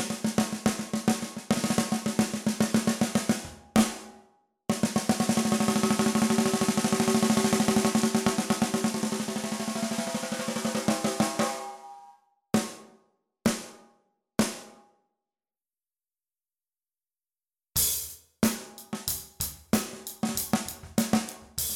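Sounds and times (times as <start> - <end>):
aluminium snare drum: 0.0 - 4.1, 4.7 - 11.8, 12.6 - 12.9, 13.5 - 13.8, 14.4 - 14.8, 17.8 - 21.7.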